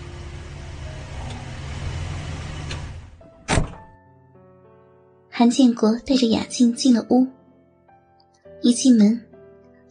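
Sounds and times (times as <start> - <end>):
car engine and road rumble as it pulls up and stops: 0.0 - 4.0
speech: 5.4 - 7.4, 8.6 - 9.3.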